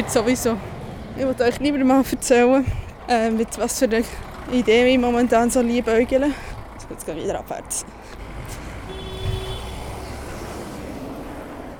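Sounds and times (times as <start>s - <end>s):
speech: 0.0s - 8.0s
vehicle horn honking outside: 8.8s - 9.9s.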